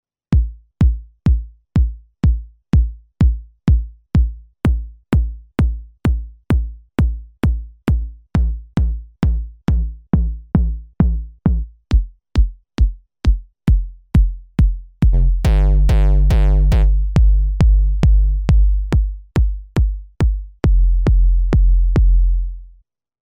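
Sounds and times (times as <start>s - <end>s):
Drumsynth synthesized kick drum: 0.3s - 22.6s.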